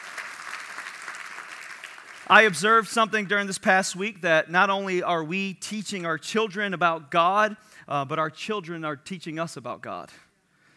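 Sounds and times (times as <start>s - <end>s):
audience applause: 0.0s - 2.3s
speech: 2.3s - 10.2s.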